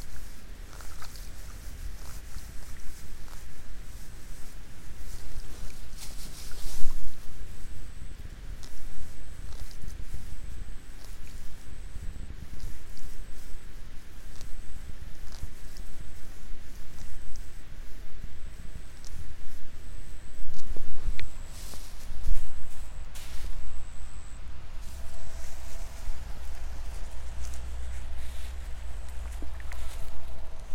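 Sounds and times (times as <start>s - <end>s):
insect chirping: 0.0s - 30.7s
rice seedlings being pulled in the afternoon: 0.0s - 30.7s
low rumble: 20.2s - 30.7s.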